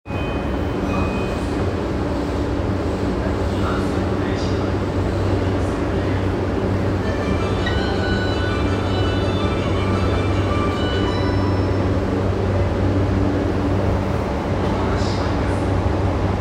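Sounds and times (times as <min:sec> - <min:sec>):
train: 0:00.0 - 0:16.3.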